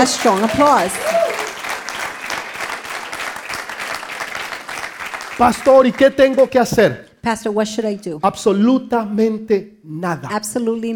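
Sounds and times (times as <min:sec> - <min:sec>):
speech: 0:00.0 - 0:01.2, 0:05.4 - 0:10.9
crowd applause: 0:00.0 - 0:07.0
person whooping: 0:00.8 - 0:01.6.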